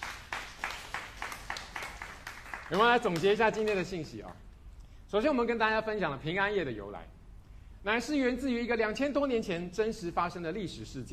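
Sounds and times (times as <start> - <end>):
congregation clapping in unison at a Christmas Eve church service: 0.0 - 4.4
speech: 2.7 - 4.4, 5.1 - 7.2, 7.8 - 11.1.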